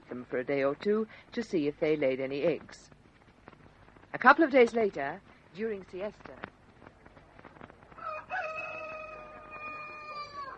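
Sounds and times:
speech: 0.2 - 3.0, 4.1 - 6.5
young rooster crowing outside during siesta: 8.0 - 10.5.

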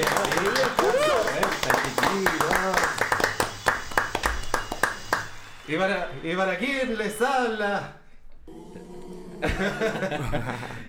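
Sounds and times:
laughter: 0.0 - 3.4, 8.7 - 10.8
applause sound effect: 0.0 - 5.6
speech: 5.7 - 8.0, 9.4 - 10.8.

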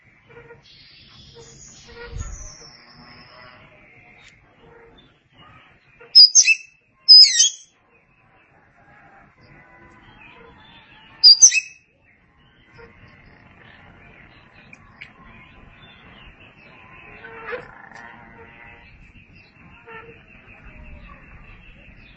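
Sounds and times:
Oriental magpie-robin song: 0.2 - 8.2, 10.0 - 22.1.

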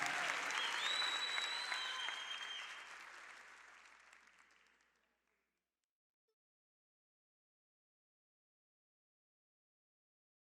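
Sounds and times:
audience applause at a live gospel concert in Belo Horizonte: 0.0 - 5.2
thin whistles from the audience: 0.2 - 2.9.

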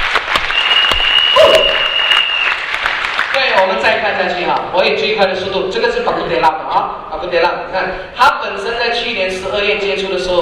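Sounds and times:
audience applause: 0.0 - 3.5
faint sustained whistle-like tone: 0.5 - 2.5
speech: 4.0 - 10.4.

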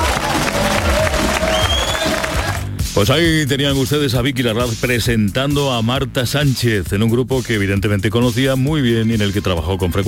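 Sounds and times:
audience applause on a variety show: 0.0 - 2.7
speech: 3.0 - 10.0.

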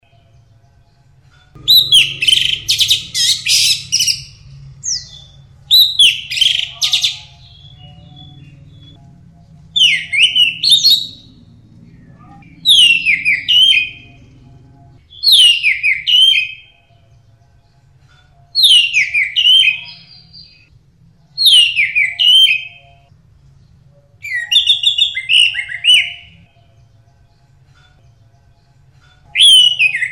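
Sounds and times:
bird song with whistle and rapid rattling trill: 1.6 - 9.0, 9.8 - 11.3, 12.4 - 14.2, 15.1 - 16.8, 18.5 - 20.7, 21.4 - 23.1, 24.2 - 26.6, 29.3 - 30.1.

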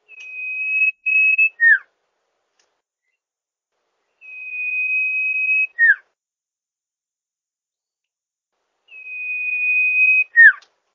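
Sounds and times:
bird song used for training songbirds: 0.0 - 1.9, 4.0 - 6.1, 8.9 - 10.7.

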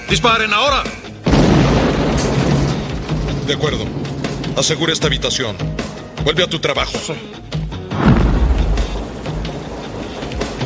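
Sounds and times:
speech: 0.1 - 1.0, 3.5 - 7.4
incoming 5-inch shells exploding, sound effect from Under Siege: 1.3 - 5.0, 7.9 - 9.2.

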